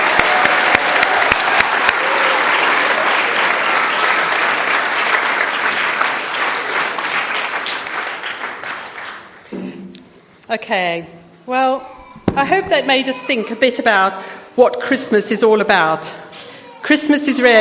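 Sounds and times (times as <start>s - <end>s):
audience applauding children's performance: 0.0s - 9.5s
speech: 10.5s - 16.3s, 16.9s - 17.5s.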